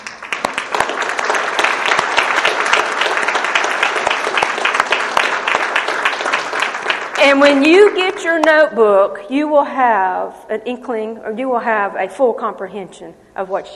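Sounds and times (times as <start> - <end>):
audience round of applause: 0.0 - 8.0
speech: 7.2 - 13.7.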